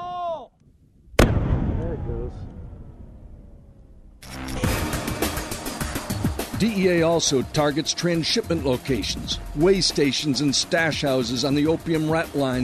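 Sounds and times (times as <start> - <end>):
explosion as special forces blow up a drug lab: 1.1 - 5.3
speech: 6.6 - 12.6.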